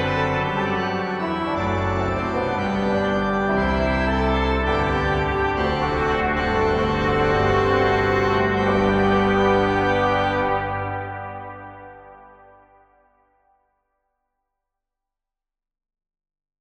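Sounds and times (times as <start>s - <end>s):
historical organ chorale: 0.0s - 13.0s.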